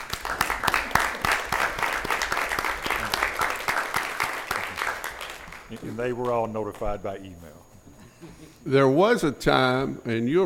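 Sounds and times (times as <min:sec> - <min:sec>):
audience clapping: 0:00.0 - 0:07.1
speech: 0:06.0 - 0:07.6, 0:08.2 - 0:10.4.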